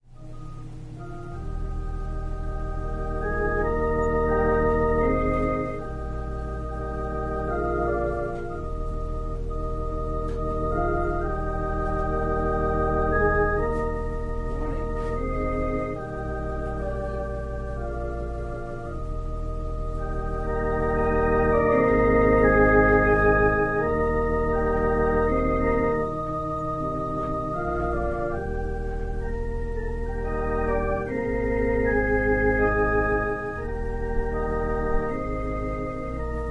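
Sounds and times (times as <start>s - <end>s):
organ prelude: 0.0s - 36.5s.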